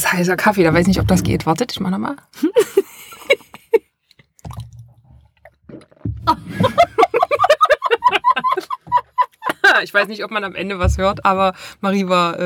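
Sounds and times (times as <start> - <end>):
speech: 0.1 - 2.9, 9.8 - 12.4
laughter: 2.4 - 3.8, 6.3 - 10.3
person swallowing with open mouth: 4.0 - 6.6.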